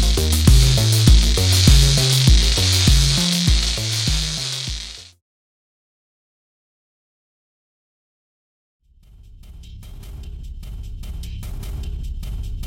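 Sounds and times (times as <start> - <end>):
pulsing low rumble: 0.0 - 5.0
sizzling of cooking skin: 0.0 - 5.1.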